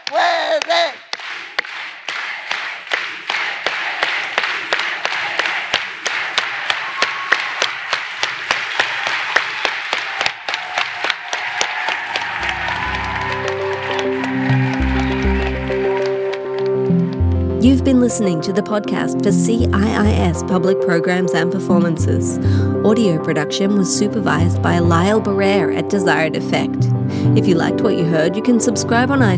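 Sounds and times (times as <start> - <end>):
audience doing a unity clap: 0.0 - 18.4
speech: 18.1 - 29.3.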